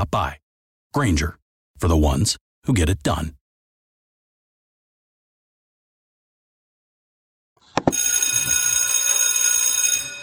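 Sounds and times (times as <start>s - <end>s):
speech: 0.0s - 3.4s
school bell ringing: 7.9s - 10.2s.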